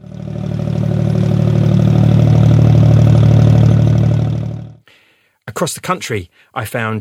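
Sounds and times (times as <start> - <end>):
water pumping station deep low rumble: 0.0 - 4.8
speech: 5.6 - 6.9.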